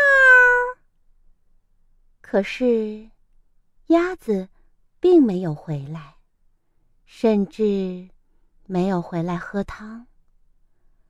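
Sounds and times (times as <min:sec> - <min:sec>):
cat meowing: 0:00.0 - 0:00.8
speech: 0:02.3 - 0:03.1, 0:03.9 - 0:06.2, 0:07.1 - 0:08.1, 0:08.7 - 0:10.1.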